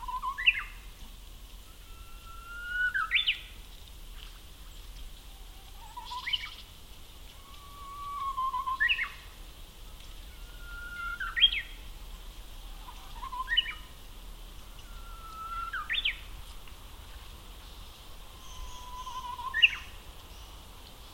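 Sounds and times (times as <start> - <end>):
Japanese bush warbler song: 0.0 - 0.8, 1.7 - 3.6, 5.8 - 6.8, 7.4 - 9.4, 10.1 - 12.0, 12.6 - 21.1.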